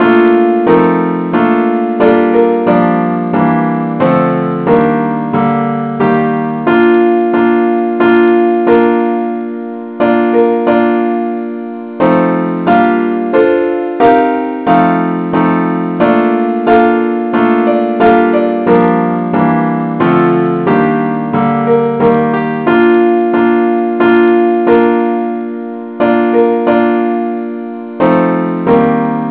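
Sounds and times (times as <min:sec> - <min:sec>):
keyboard: 0:00.0 - 0:29.2.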